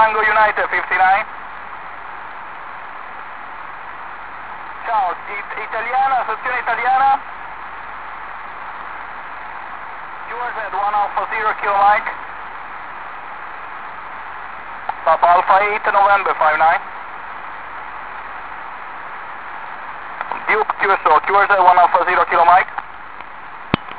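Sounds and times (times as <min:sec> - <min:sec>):
50 MHz radio signal: 0:00.0 - 0:01.3, 0:04.8 - 0:07.2, 0:10.3 - 0:12.2, 0:14.9 - 0:16.9, 0:20.2 - 0:22.8.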